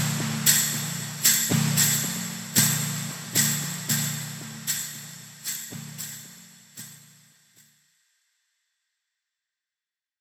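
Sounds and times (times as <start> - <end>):
rare Afro drum percussion: 0.0 - 7.1.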